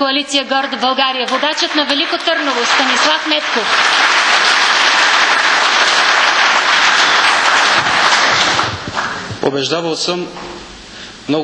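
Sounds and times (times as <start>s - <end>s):
speech: 0.0s - 4.6s, 9.5s - 10.6s, 11.3s - 11.4s
audience applause: 0.6s - 9.4s.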